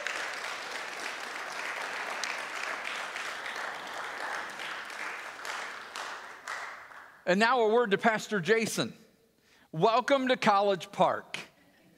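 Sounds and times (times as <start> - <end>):
church congregation clapping for its pastoral team: 0.0 - 7.4
speech: 7.3 - 9.0, 9.7 - 11.4.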